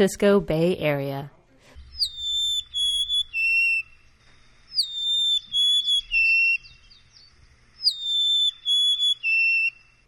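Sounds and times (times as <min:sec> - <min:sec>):
speech: 0:00.0 - 0:01.4
Golden-crowned sparrow song: 0:01.9 - 0:04.1, 0:04.7 - 0:10.0.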